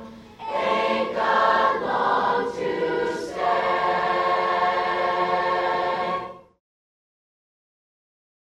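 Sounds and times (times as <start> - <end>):
choir singing at a chorus festival: 0.0 - 6.6.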